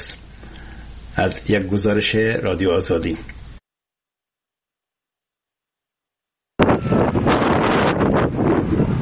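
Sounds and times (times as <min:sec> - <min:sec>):
speech: 0:01.2 - 0:03.4
strong wind blowing against tents in Herat: 0:06.6 - 0:09.0.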